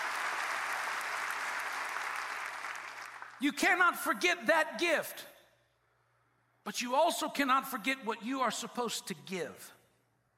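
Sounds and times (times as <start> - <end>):
audience clapping: 0.0 - 3.5
speech: 3.4 - 5.3, 6.6 - 9.8.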